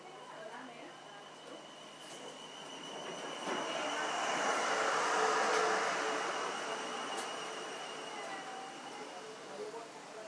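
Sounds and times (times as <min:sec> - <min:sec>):
suburban train leaving Whitton, heard on board: 0:00.9 - 0:10.2.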